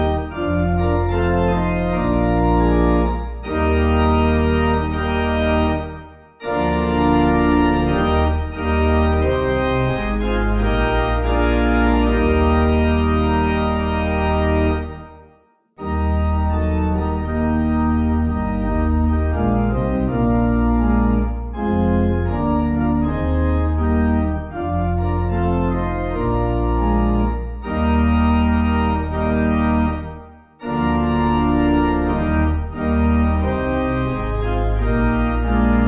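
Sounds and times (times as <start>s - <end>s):
pipe organ playing a hymn in E flat: 0.0s - 35.8s.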